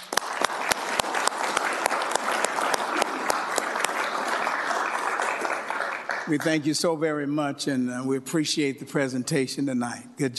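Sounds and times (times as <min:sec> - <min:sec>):
audience applause: 0:00.0 - 0:06.7
speech: 0:06.3 - 0:10.3.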